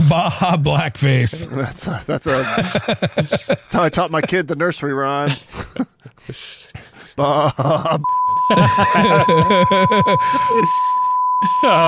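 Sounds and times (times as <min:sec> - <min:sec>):
speech: 0:00.1 - 0:11.8
laughter: 0:02.2 - 0:04.6, 0:07.2 - 0:11.8
long high-pitched censor beep: 0:08.0 - 0:11.8.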